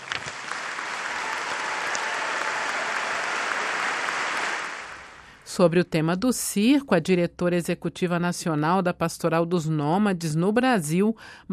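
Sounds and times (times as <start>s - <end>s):
audience applause: 0.0s - 5.4s
speech: 5.6s - 11.5s.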